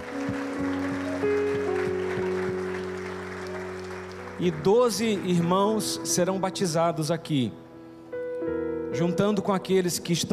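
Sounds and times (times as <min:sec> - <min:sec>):
audience applause: 0:00.0 - 0:05.4
sustained keyboard chords: 0:00.0 - 0:10.3
regular pulsing beat: 0:00.1 - 0:03.0
speech: 0:04.4 - 0:07.6, 0:09.0 - 0:10.3.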